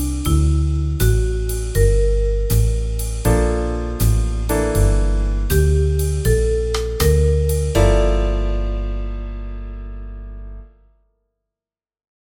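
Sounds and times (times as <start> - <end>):
B flat bass note: 0.0 - 10.7.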